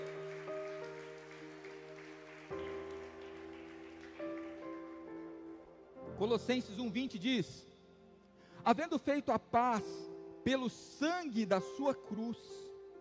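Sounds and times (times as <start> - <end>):
crowd clapping: 0.0 - 5.7
sustained keyboard or organ chords: 0.0 - 13.0
speech: 6.2 - 7.7, 8.6 - 12.7.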